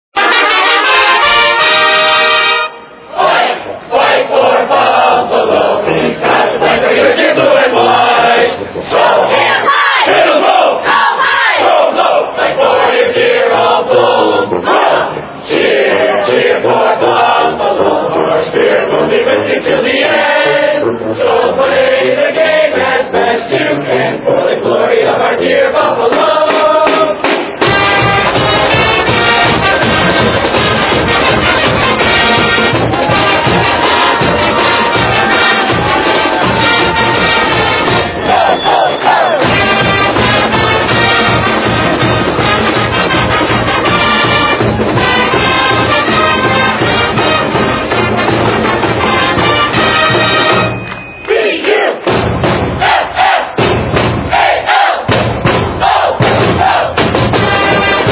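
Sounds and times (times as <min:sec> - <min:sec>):
fight song victory march: 0:00.2 - 0:58.1.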